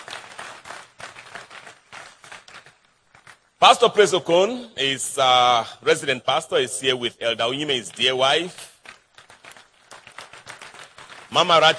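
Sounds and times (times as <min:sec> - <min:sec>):
live audience clapping their hands: 0:00.0 - 0:03.8, 0:07.3 - 0:11.7
speech: 0:03.6 - 0:08.6, 0:11.4 - 0:11.7.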